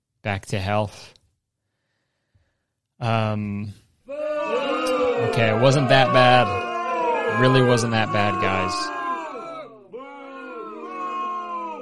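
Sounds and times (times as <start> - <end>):
speech: 0.2 - 1.2, 3.0 - 4.2, 5.2 - 6.6, 7.3 - 9.0
crowd booing sound effect: 4.1 - 11.8.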